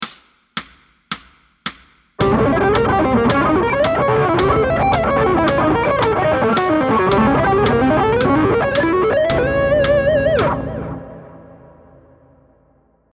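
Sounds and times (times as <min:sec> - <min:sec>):
musical lick: 0:02.2 - 0:12.0.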